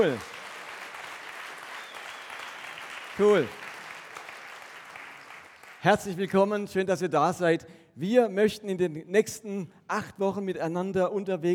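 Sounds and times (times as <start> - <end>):
speech: 0.0 - 0.3, 3.2 - 3.6, 5.8 - 11.5
audience applause: 0.0 - 6.0.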